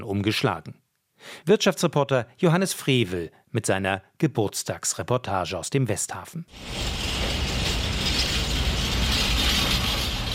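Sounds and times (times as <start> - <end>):
speech: 0.0 - 7.6
long freight train being shunted onto a container terminal, clanking and rumbling: 6.5 - 10.3.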